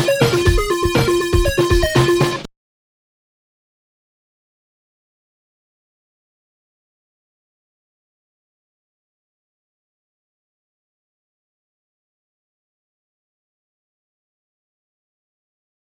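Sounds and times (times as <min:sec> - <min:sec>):
arpeggio: 0:00.0 - 0:02.5.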